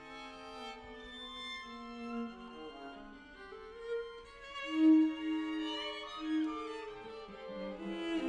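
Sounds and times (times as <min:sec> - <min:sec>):
string quartet playing: 0:01.6 - 0:08.2.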